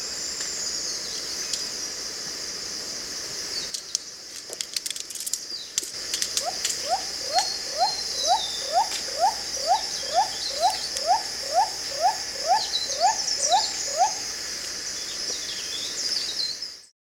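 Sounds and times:
Andaman cuckoo dove: 6.4s - 14.2s.

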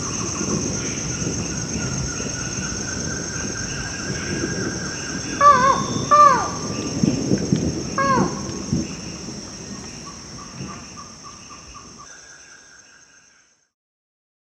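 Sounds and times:
crickets chirping: 0.0s - 13.8s
insect hum: 0.0s - 13.8s
Buckley's forest falcon nasal calls: 5.4s - 6.7s, 8.0s - 8.6s.

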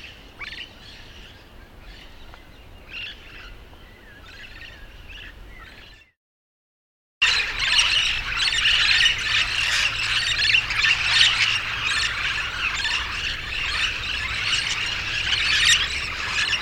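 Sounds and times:
yellow-shouldered parrot squawking: 7.3s - 16.6s.

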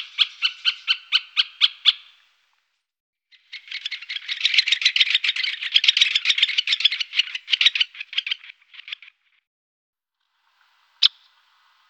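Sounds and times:
great spotted woodpecker calling: 0.0s - 2.2s, 3.4s - 9.0s.

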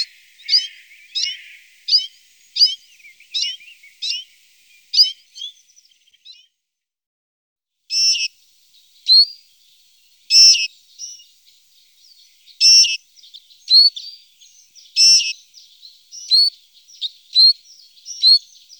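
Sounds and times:
citril finch chirping and buzzing: 0.5s - 4.2s, 7.9s - 8.3s, 9.0s - 9.4s, 10.3s - 11.3s, 12.1s - 18.7s.

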